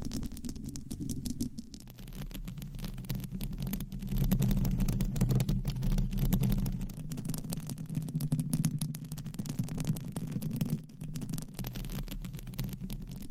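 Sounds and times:
microphones scratched and rubbed: 0:00.0 - 0:07.0
crackly ticks: 0:00.0 - 0:13.3.

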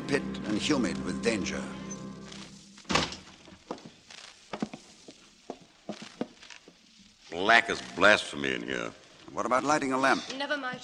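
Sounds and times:
speech: 0:00.1 - 0:01.8, 0:07.4 - 0:10.8
heavy walnut door opening: 0:02.8 - 0:03.3.

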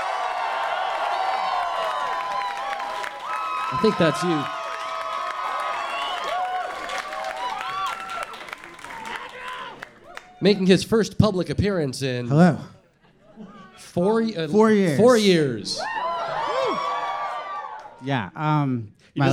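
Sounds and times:
high whoops and shouts: 0:00.0 - 0:08.4, 0:15.8 - 0:18.0
crowd applauding and cheering: 0:00.0 - 0:10.7, 0:15.8 - 0:18.0
speech: 0:03.7 - 0:04.6, 0:10.4 - 0:12.8, 0:14.0 - 0:16.0, 0:18.0 - 0:19.3.

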